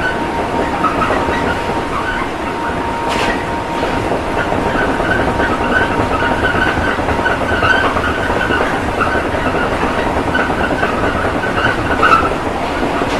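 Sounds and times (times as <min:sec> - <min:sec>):
train: 0:00.0 - 0:13.1.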